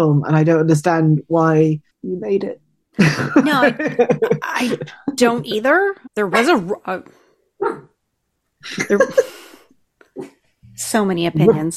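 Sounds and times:
speech: 0.0s - 7.9s, 8.6s - 9.4s, 10.2s - 11.7s
laughter: 3.0s - 5.2s, 8.6s - 9.4s
dog barking: 7.6s - 7.9s.

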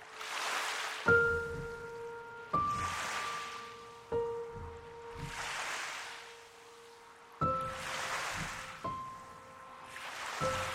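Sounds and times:
lapping Columbia River water at Kelley Point: 0.0s - 10.7s.

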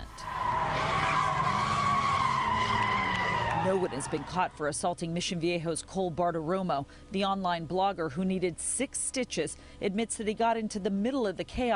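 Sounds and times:
car tires skidding while spinning donuts: 0.1s - 4.6s
speech: 3.6s - 11.7s.

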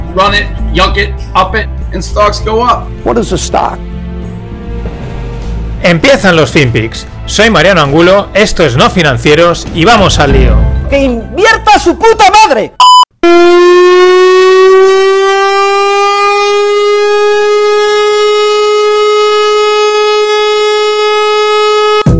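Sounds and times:
speech: 0.1s - 3.9s, 5.8s - 15.0s
giant truck-mounted horn blaring: 3.8s - 5.8s, 12.8s - 22.1s.

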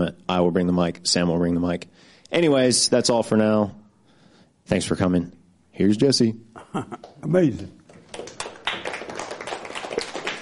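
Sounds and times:
speech: 0.0s - 3.8s, 4.7s - 7.8s
crowd applause: 7.9s - 10.4s.

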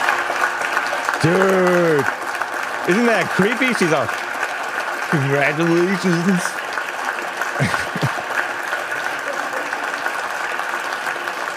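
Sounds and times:
applause in a nearly empty Senate chamber: 0.0s - 11.5s
laughter: 2.9s - 4.1s, 5.1s - 6.5s, 7.5s - 8.5s
speech: 2.9s - 4.2s, 5.1s - 6.6s, 7.6s - 7.8s.

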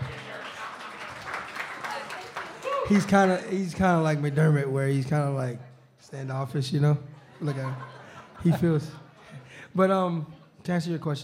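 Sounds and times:
audience clapping: 0.0s - 4.5s
speech: 2.9s - 9.0s, 9.7s - 11.2s
laughter: 7.1s - 9.6s.

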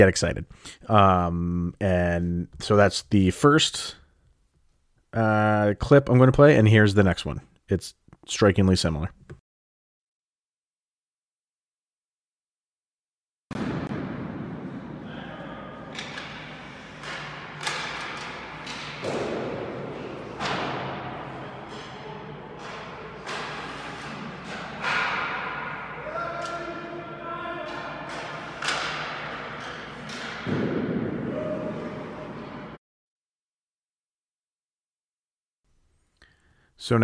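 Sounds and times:
speech: 0.0s - 4.0s, 5.2s - 9.4s, 36.9s - 37.0s
ice hockey wrist shots hitting a goal: 13.5s - 27.0s, 27.7s - 31.9s.

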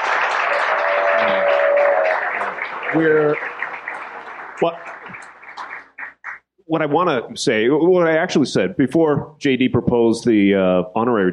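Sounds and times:
university audience applauding a guest speaker: 0.0s - 6.5s
speech: 2.9s - 3.6s, 4.6s - 5.0s, 6.7s - 11.3s.

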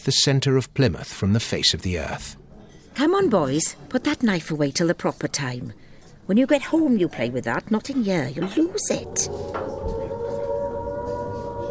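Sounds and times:
speech: 0.0s - 2.4s, 3.0s - 9.8s
distant air raid sirens: 7.2s - 11.6s.

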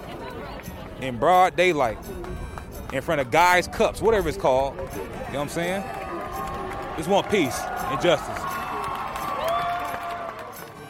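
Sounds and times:
speech: 1.0s - 6.0s, 7.0s - 8.5s
crowd cheering: 4.9s - 10.8s.

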